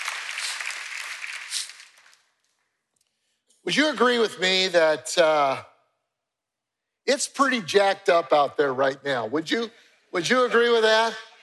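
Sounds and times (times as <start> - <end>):
church congregation applauding during a morning service: 0.0 - 2.3
speech: 3.6 - 5.7, 7.1 - 11.3.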